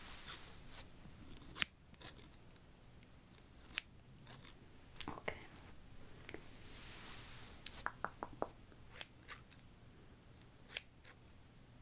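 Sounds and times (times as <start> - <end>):
soft hiss: 0.0 - 11.8
scissor snips during a haircut: 1.3 - 2.4, 3.6 - 4.6, 10.6 - 11.3.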